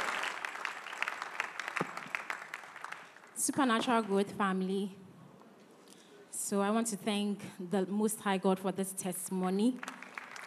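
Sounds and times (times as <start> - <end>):
audience clapping: 0.0 - 4.1, 9.8 - 10.4
speech: 3.4 - 5.0, 6.5 - 9.9.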